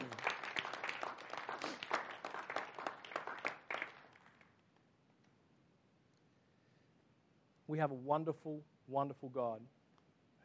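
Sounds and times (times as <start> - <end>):
crowd applauding: 0.0 - 4.5
speech: 7.7 - 9.8.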